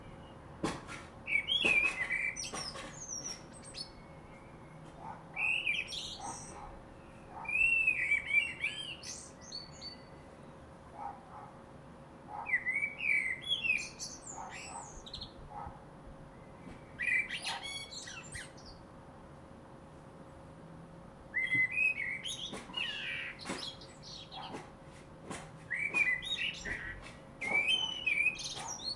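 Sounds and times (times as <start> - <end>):
common blackbird warbled song: 1.2 - 10.7, 12.3 - 15.6, 16.2 - 18.8, 21.3 - 24.7, 25.6 - 28.9.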